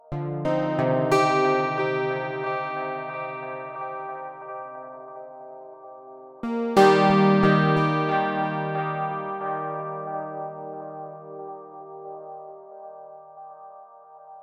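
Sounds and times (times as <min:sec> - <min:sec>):
guitar: 0:00.3 - 0:05.2, 0:06.4 - 0:12.7.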